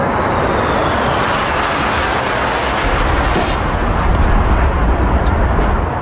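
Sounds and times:
aircraft flypast roaring overhead: 0.0s - 5.9s
sharp bursts: 2.6s - 5.9s.

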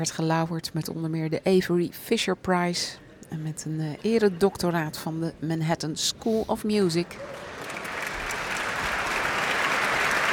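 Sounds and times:
speech: 0.0s - 7.6s
concert audience applause: 7.2s - 10.3s.

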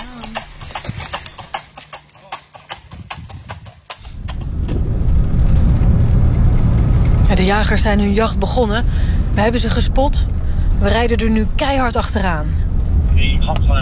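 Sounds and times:
horses carrying riders clopping along a road during a fox hunt: 0.0s - 13.8s
loud continuous rushing noise: 4.0s - 13.8s
speech: 7.3s - 12.6s, 13.2s - 13.8s.

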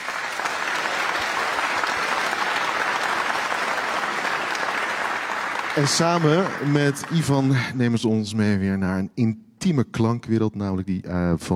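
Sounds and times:
audience applause: 0.0s - 8.0s
speech: 5.8s - 11.5s.

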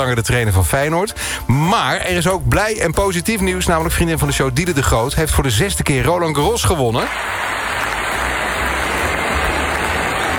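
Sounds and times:
speech: 0.0s - 7.9s
loud applause: 7.0s - 10.3s.

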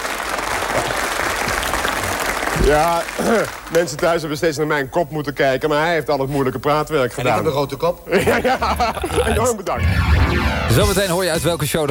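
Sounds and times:
applause from a studio audience: 0.0s - 4.1s
speech: 2.6s - 11.8s
laughter: 8.1s - 9.6s.

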